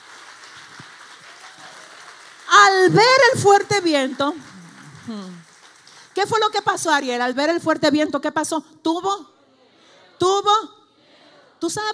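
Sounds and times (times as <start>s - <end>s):
loud audience applause: 0.0s - 6.8s
speech: 2.8s - 4.5s, 5.1s - 5.4s, 6.2s - 9.3s, 10.2s - 10.8s, 11.6s - 11.9s.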